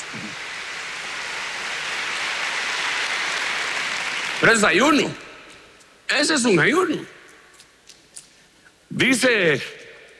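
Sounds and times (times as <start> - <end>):
audience applause: 0.0 - 5.2
speech: 4.4 - 5.3, 6.1 - 7.2, 9.0 - 9.8.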